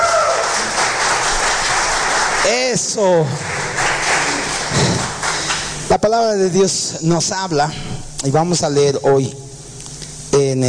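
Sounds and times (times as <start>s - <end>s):
audience applauding loudly: 0.0s - 5.9s
speech: 2.5s - 3.6s, 6.0s - 9.5s.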